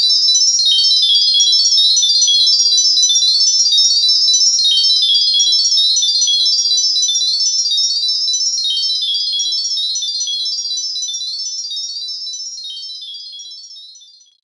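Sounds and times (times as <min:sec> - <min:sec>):
magic jingle: 0:00.8 - 0:14.2.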